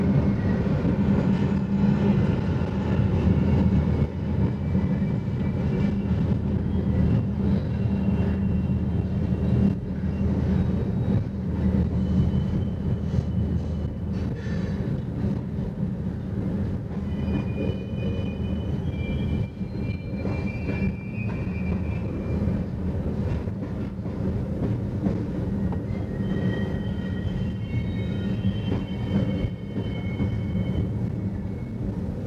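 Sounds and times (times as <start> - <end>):
train in Pasco: 0.0 - 32.2.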